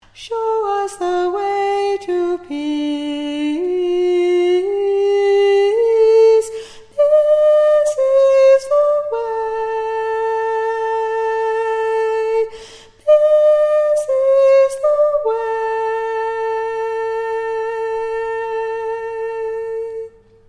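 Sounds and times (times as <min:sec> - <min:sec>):
soprano singing: 0:00.0 - 0:20.4.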